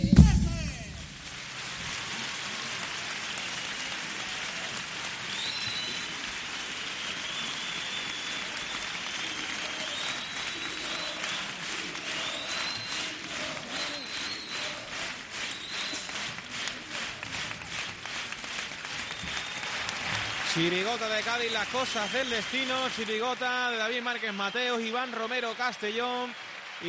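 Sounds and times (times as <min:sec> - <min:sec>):
large theatre audience applauding loudly: 0:00.2 - 0:26.8
faint cheers: 0:04.2 - 0:16.2, 0:19.0 - 0:23.6
high whistles: 0:05.3 - 0:06.2, 0:07.0 - 0:16.3, 0:19.0 - 0:20.0, 0:21.1 - 0:22.9
speech: 0:20.9 - 0:26.8.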